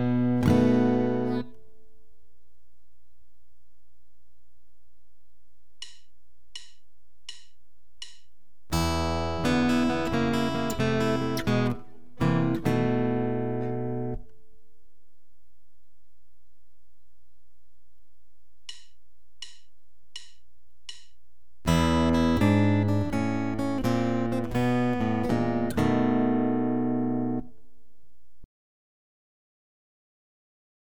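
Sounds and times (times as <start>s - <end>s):
blues turnarounds on guitar: 0.0s - 1.7s, 8.8s - 14.3s, 21.7s - 27.5s.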